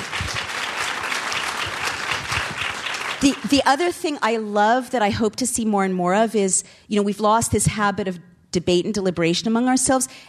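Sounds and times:
audience applause: 0:00.0 - 0:03.6
speech: 0:03.2 - 0:10.2.

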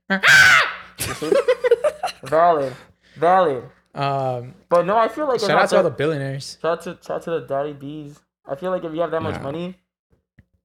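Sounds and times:
speech: 0:00.1 - 0:00.6, 0:01.2 - 0:09.8
person imitating an eagle cry: 0:00.1 - 0:00.9
laughter: 0:01.0 - 0:02.8.

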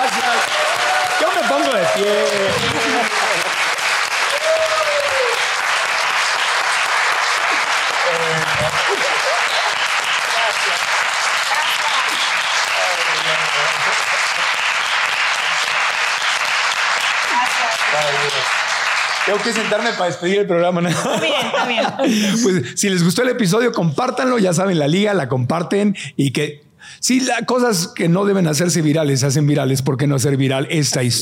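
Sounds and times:
scattered faint voices and cheers: 0:00.0 - 0:03.6, 0:04.2 - 0:05.6, 0:07.5 - 0:13.8
audience applause: 0:00.0 - 0:20.3
speech: 0:01.6 - 0:03.2, 0:19.3 - 0:31.2
laughter: 0:02.2 - 0:03.5, 0:07.3 - 0:10.8, 0:12.8 - 0:15.8, 0:20.8 - 0:22.7.

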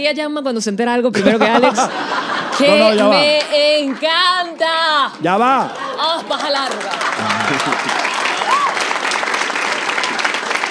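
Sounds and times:
speech: 0:00.0 - 0:08.6
laughter: 0:01.2 - 0:03.7, 0:05.3 - 0:08.4
crowd clapping: 0:02.4 - 0:10.6.

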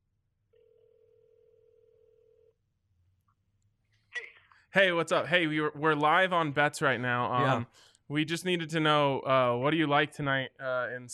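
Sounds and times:
outgoing phone call ringback tone: 0:00.6 - 0:02.5
speech: 0:04.7 - 0:11.1.

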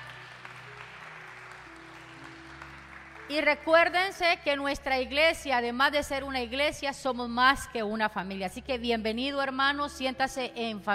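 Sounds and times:
audience clapping: 0:00.0 - 0:04.2
low sustained musical tones: 0:00.0 - 0:05.1
speech: 0:03.3 - 0:10.9.

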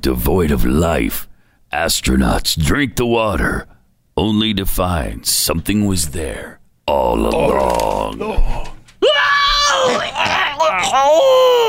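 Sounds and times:
speech: 0:00.0 - 0:09.2, 0:09.8 - 0:11.6
voice imitating pig squeals: 0:09.0 - 0:11.6.

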